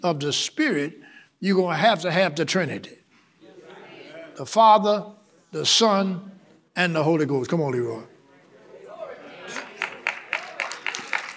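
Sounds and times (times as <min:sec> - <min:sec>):
speech: 0:00.0 - 0:03.0, 0:04.4 - 0:08.1
audience clapping: 0:09.4 - 0:11.3.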